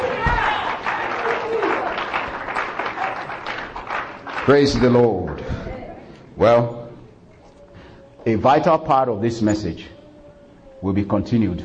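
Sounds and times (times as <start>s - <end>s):
audience hand clapping: 0.0s - 5.5s
speech: 4.5s - 5.6s, 6.4s - 6.8s, 8.2s - 10.0s, 10.8s - 11.6s.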